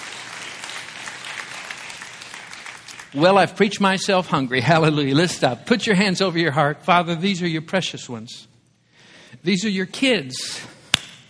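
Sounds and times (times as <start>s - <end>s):
audience applause: 0.0s - 3.2s
speech: 3.1s - 8.5s, 9.4s - 10.8s.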